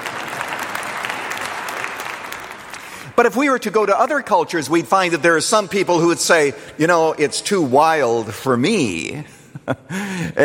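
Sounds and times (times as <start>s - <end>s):
audience clapping: 0.0s - 4.0s
speech: 3.2s - 10.4s.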